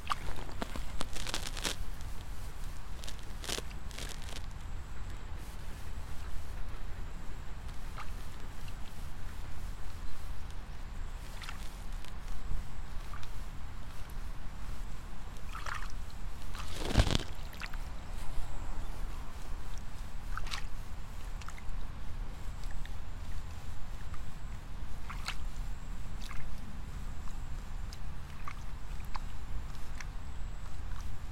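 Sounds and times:
rice seedlings pulled snapping and rustling: 0:00.0 - 0:02.3, 0:03.0 - 0:04.5, 0:16.5 - 0:17.8
faint thin high whine: 0:00.0 - 0:31.3.

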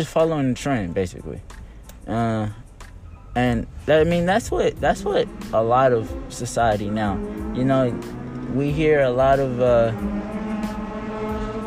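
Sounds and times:
speech: 0:00.0 - 0:01.5, 0:02.1 - 0:02.6, 0:03.4 - 0:10.3
motorcycle engine running past: 0:03.7 - 0:11.6.

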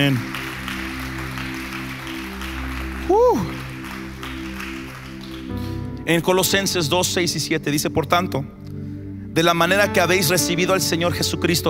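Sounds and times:
speech: 0:00.0 - 0:00.3, 0:06.1 - 0:08.6, 0:09.4 - 0:11.6
audience applause: 0:00.0 - 0:05.9.

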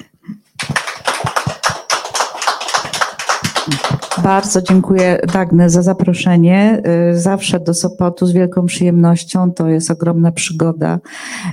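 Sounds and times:
audience applause: 0:00.6 - 0:05.4
speech: 0:03.7 - 0:11.5.

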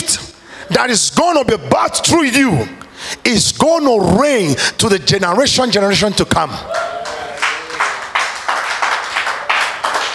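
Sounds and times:
speech: 0:00.1 - 0:06.8
audience clapping: 0:06.7 - 0:10.1.

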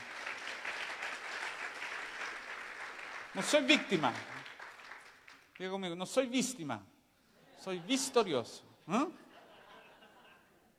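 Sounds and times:
audience applauding: 0:00.0 - 0:05.7
speech: 0:03.4 - 0:04.4, 0:05.6 - 0:06.9, 0:07.6 - 0:09.2
laughter: 0:09.1 - 0:10.7.

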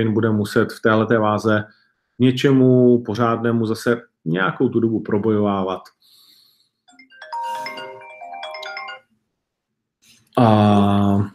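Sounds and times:
speech: 0:00.0 - 0:06.2, 0:10.4 - 0:11.3
phone ringtone of an incoming call: 0:06.9 - 0:09.2.

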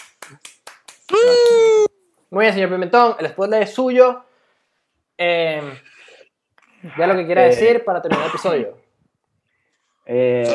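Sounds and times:
hand claps: 0:00.0 - 0:01.9
speech: 0:02.3 - 0:04.3, 0:05.2 - 0:05.9, 0:06.8 - 0:08.8, 0:10.1 - 0:10.5.

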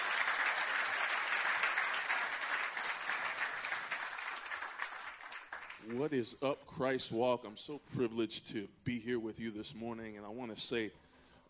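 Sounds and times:
church audience applauding to welcome a pastor: 0:00.0 - 0:06.2
speech: 0:05.8 - 0:11.4.

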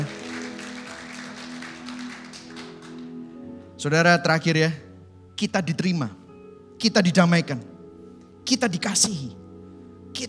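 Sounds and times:
audience applause: 0:00.0 - 0:03.2
speech: 0:03.8 - 0:04.8, 0:05.4 - 0:06.2, 0:06.8 - 0:07.7, 0:08.5 - 0:09.4.

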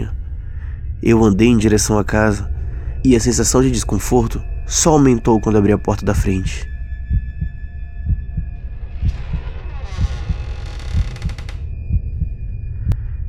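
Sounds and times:
faint high drone: 0:00.0 - 0:13.2
speech: 0:01.0 - 0:06.7
heartbeat sound effect: 0:07.0 - 0:13.1.

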